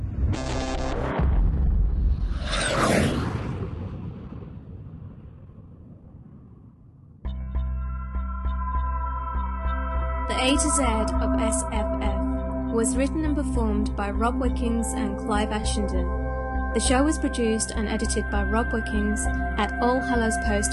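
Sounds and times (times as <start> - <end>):
sci-fi star drive swelling whoosh over deep rumble: 0.0 - 0.5, 1.1 - 7.2
sci-fi star drive buzzing harmonic drone: 7.6 - 20.7
speech: 10.4 - 20.7.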